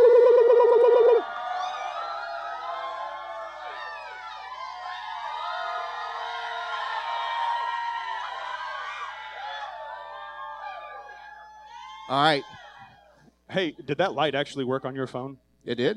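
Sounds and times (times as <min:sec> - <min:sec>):
warbling cry: 0:00.0 - 0:01.3
live audience cheering loudly: 0:00.0 - 0:13.3
speech: 0:12.1 - 0:12.6, 0:13.5 - 0:15.9.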